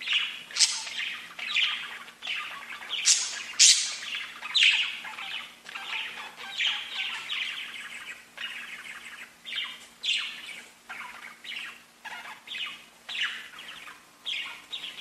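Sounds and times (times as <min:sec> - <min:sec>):
budgerigar warbling chatter: 0:00.1 - 0:14.9.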